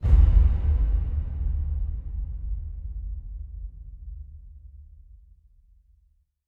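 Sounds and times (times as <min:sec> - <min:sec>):
percussion hit: 0:00.0 - 0:04.5.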